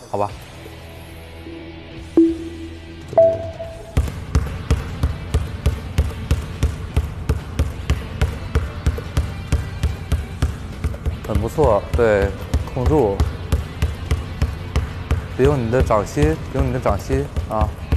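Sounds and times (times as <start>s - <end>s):
speech: 0.1s - 0.5s, 11.3s - 13.3s, 15.4s - 17.8s
basketball dribbled rapidly in a training drill: 4.0s - 15.9s.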